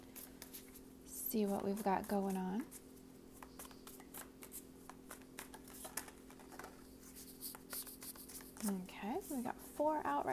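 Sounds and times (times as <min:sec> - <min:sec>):
low steady hum: 0:00.0 - 0:10.3
speech: 0:01.3 - 0:02.8, 0:08.7 - 0:10.3
tarot cards being shuffled and drawn: 0:01.5 - 0:08.8.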